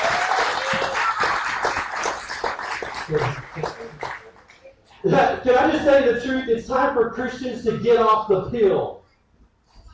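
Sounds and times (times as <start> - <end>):
audience applause: 0.0 - 4.6
speech: 3.1 - 3.4, 5.2 - 9.0.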